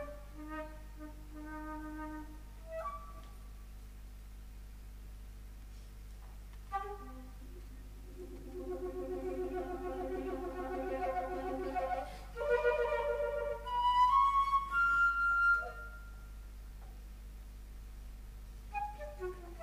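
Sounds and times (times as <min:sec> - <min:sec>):
flute: 0:00.0 - 0:03.6, 0:06.7 - 0:16.4, 0:18.7 - 0:19.6.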